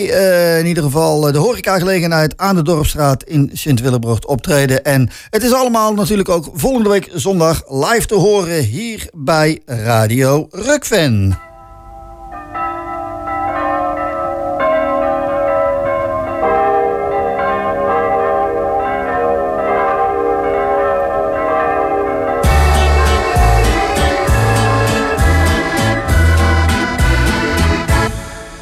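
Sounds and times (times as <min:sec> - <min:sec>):
speech: 0:00.0 - 0:11.5
small church bells ringing: 0:11.4 - 0:28.5.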